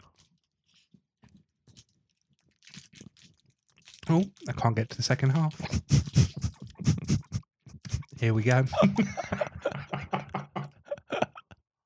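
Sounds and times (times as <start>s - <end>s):
biting and chewing hard cold chocolate: 0.0s - 8.6s
speech: 4.1s - 6.5s, 8.2s - 9.3s
laughter: 8.2s - 11.8s.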